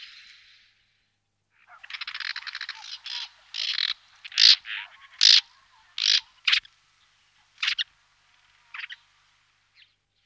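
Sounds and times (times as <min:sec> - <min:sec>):
woodchat shrike singing a jumbled medley: 0:01.6 - 0:09.2.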